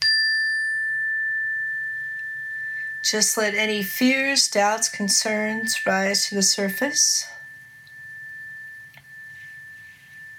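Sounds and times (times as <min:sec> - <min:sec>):
cleansing chime ringing: 0:00.0 - 0:10.3
speech: 0:03.0 - 0:07.3.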